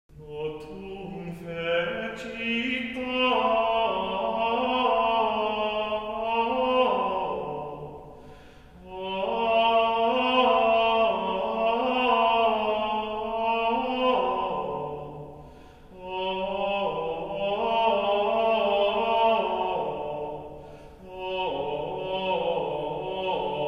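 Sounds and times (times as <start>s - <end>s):
Gregorian chant of the Mass Gradual: 0.1s - 23.6s.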